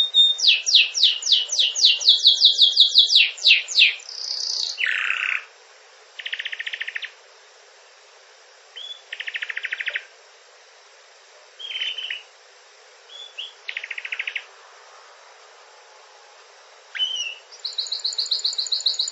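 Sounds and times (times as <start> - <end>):
canary singing a rolling song of buzzy rattles and trills: 0.0 - 5.5, 6.2 - 7.2, 8.8 - 10.1, 11.6 - 12.3, 13.1 - 14.5, 16.9 - 19.1.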